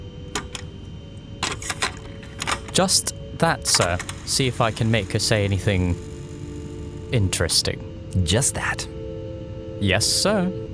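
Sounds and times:
mechanical clicks of a fresh tape being loaded into a tape recorder: 0.2s - 0.7s, 1.4s - 2.8s, 3.7s - 5.0s
speech: 2.8s - 6.1s, 7.1s - 8.9s, 9.8s - 10.7s.

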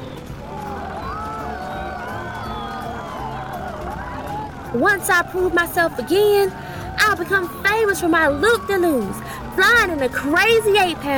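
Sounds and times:
crowd cheering and shouting: 0.0s - 11.1s
speech: 4.7s - 11.1s.

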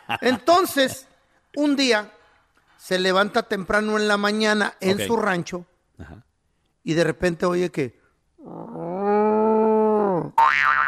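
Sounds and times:
speech: 0.1s - 2.2s, 2.8s - 8.7s
person's voice imitating a cow mooing: 8.4s - 10.4s.

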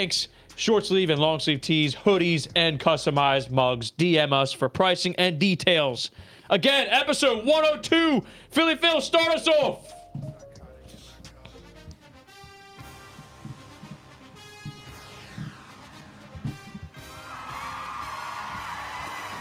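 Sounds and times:
speech: 0.0s - 10.3s
scattered yells and bangs: 16.9s - 19.3s
crowd cheering and whooping: 17.0s - 19.3s.

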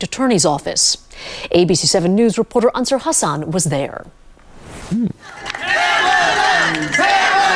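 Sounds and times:
speech: 0.0s - 4.2s, 4.9s - 6.0s
crowd cheering at a rally: 5.2s - 7.5s.

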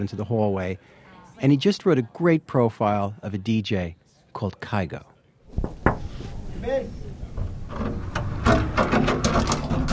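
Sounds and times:
speech: 0.0s - 5.8s, 6.6s - 7.0s
clattering rustling movement: 5.5s - 9.9s
creaky noisy door opening: 7.3s - 9.9s.

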